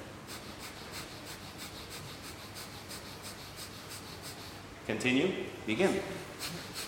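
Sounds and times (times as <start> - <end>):
breath of fire rapid nasal breathing: 0.2 - 4.7, 6.2 - 6.8
speech: 4.9 - 6.6.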